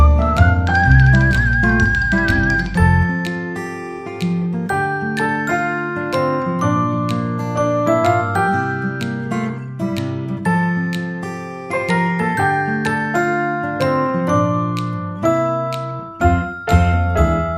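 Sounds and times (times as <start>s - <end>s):
double bass melody: 0.0s - 3.1s, 16.2s - 17.5s
acoustic guitar: 0.0s - 17.5s.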